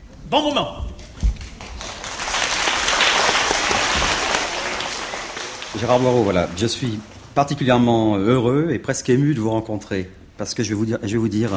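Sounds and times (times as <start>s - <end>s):
speech: 0.3s - 0.9s, 5.8s - 11.5s
theatre audience applause: 1.4s - 7.4s.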